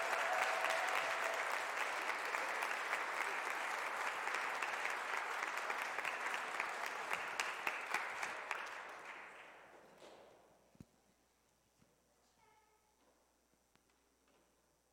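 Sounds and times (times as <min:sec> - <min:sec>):
audience applause: 0:00.0 - 0:09.6.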